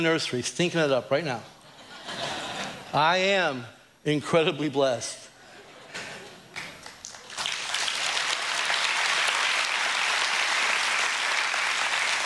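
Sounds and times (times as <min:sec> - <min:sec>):
speech: 0:00.0 - 0:02.3, 0:02.9 - 0:05.2
audience clapping: 0:06.3 - 0:12.2.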